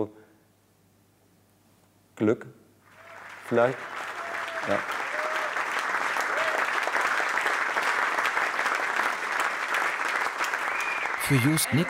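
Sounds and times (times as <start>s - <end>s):
speech: 0.0s - 0.2s, 2.2s - 2.6s, 3.5s - 4.0s, 4.7s - 5.0s, 11.3s - 11.8s
audience applause after a concert: 2.9s - 11.8s.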